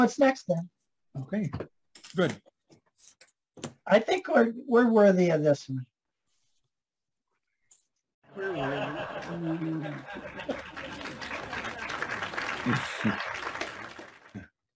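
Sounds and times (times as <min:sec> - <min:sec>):
speech: 0:00.0 - 0:02.5, 0:03.6 - 0:05.9, 0:08.4 - 0:10.7, 0:12.6 - 0:13.4
audience laughing: 0:08.3 - 0:14.5.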